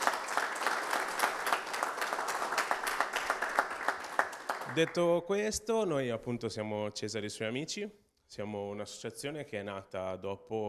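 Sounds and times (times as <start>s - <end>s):
crowd applauding: 0.0s - 5.1s
speech: 4.8s - 10.6s.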